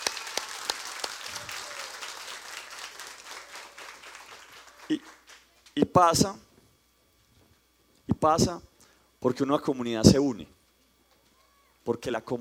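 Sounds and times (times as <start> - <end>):
audience applause: 0.0 - 5.5
speech: 4.9 - 5.2, 5.8 - 6.4, 8.2 - 10.6, 11.9 - 12.3.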